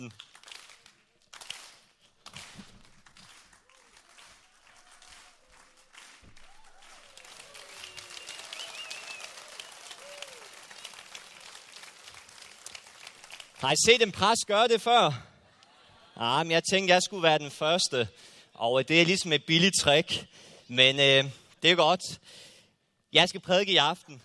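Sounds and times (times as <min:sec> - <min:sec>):
speech: 0:00.0 - 0:00.3, 0:13.6 - 0:15.3, 0:16.2 - 0:22.5, 0:23.1 - 0:24.2
audience clapping along: 0:00.0 - 0:14.2.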